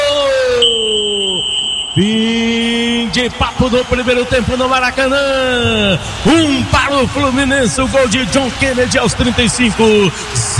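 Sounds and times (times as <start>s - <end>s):
referee's whistle ending the first half of Fluminense versus Vitória at the Maracanã: 0.5s - 2.4s
speech: 2.0s - 10.5s.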